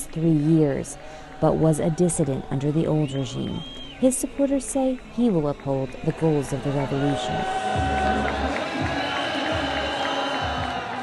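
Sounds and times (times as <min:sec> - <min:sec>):
crowd singing and chanting: 0:00.0 - 0:11.0
speech: 0:00.2 - 0:08.0.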